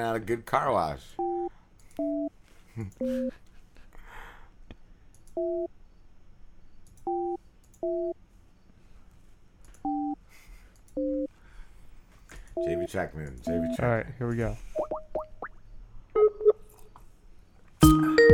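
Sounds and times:
speech: 0.0s - 1.2s, 2.0s - 3.4s, 12.6s - 14.9s
hiss: 0.0s - 18.2s
telephone call tone on a prank call: 1.2s - 2.3s, 9.8s - 10.2s, 11.0s - 11.3s, 12.6s - 13.8s.

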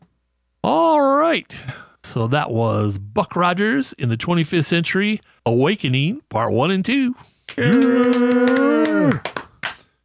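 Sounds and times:
speech: 0.6s - 9.3s
hand claps: 7.6s - 9.9s.

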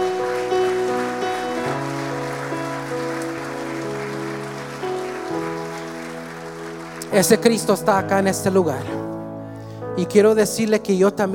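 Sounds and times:
audience applause: 0.0s - 8.6s
sustained keyboard chords: 0.0s - 11.3s
speech: 7.1s - 9.1s, 10.0s - 11.3s.

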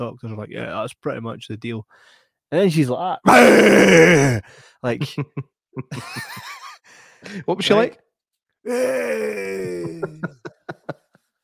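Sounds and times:
speech: 0.0s - 8.0s, 8.6s - 10.4s
person imitating a zombie groan: 3.3s - 4.4s, 8.7s - 10.4s
laughter: 4.9s - 6.8s, 9.1s - 11.3s.

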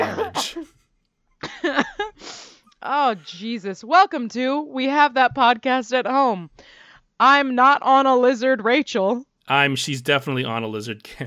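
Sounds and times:
raspy coughing: 0.0s - 0.7s
speech: 2.8s - 11.2s.

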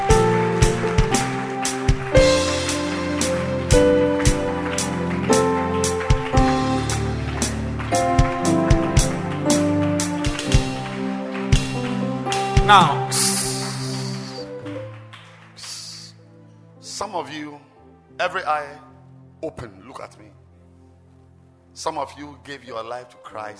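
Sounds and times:
crowd clapping hands: 0.0s - 16.2s
speech: 21.8s - 23.5s.

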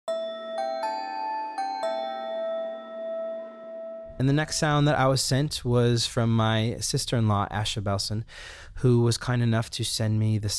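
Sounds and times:
bell-like keyboard patch melody: 0.1s - 4.8s
speech: 4.2s - 10.5s.

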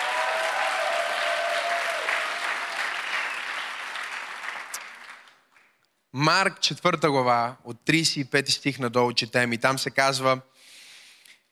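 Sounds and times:
audience applause: 0.0s - 5.7s
speech: 6.2s - 10.7s.

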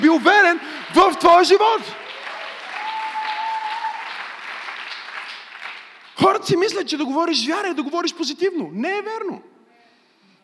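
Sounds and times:
audience clapping: 0.0s - 7.0s
speech: 0.1s - 2.0s, 6.2s - 9.5s.

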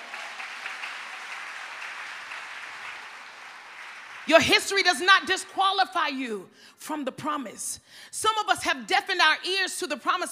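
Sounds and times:
audience clapping hands: 0.0s - 4.6s
speech: 4.2s - 10.2s.

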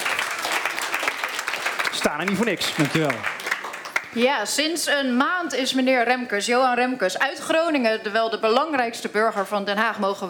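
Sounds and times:
audience applause: 0.0s - 4.2s
speech: 2.0s - 3.4s, 4.1s - 10.2s.

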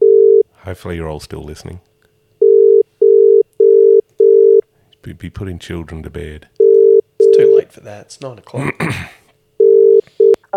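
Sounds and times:
phone ringing tone: 0.0s - 0.4s, 2.4s - 4.6s, 6.6s - 7.6s, 9.6s - 10.5s
speech: 0.7s - 1.9s, 5.0s - 6.5s, 7.4s - 9.2s.

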